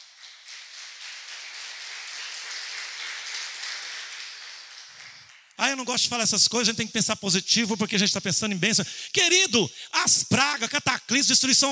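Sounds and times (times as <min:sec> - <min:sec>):
audience applause: 0:00.0 - 0:05.6
speech: 0:05.6 - 0:11.7.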